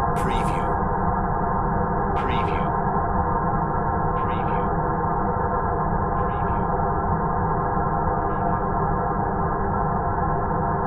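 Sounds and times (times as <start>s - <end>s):
airy drone: 0.2s - 1.0s, 2.1s - 3.4s, 4.0s - 10.7s.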